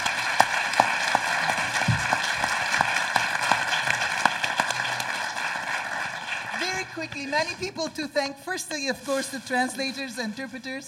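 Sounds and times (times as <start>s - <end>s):
audience applause: 0.0s - 7.5s
speech: 7.3s - 10.8s.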